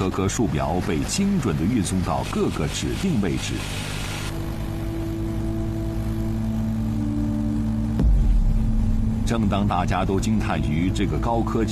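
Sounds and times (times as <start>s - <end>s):
speech: 0.1s - 4.0s, 9.3s - 11.7s
drone propellers buzzing: 0.8s - 11.7s
sharp knock: 8.0s - 9.5s.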